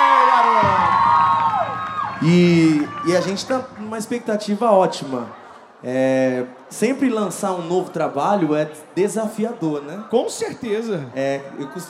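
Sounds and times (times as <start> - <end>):
crowd applause: 0.0 - 5.3
loud audience cheering and whooping: 0.0 - 5.4
speech: 2.2 - 11.8.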